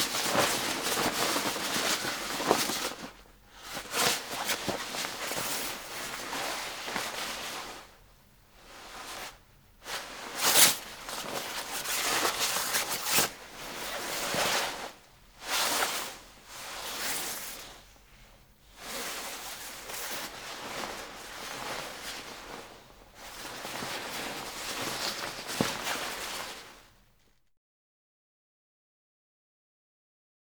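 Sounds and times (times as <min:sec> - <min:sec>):
raincoat clothing rustling: 0:00.0 - 0:27.0.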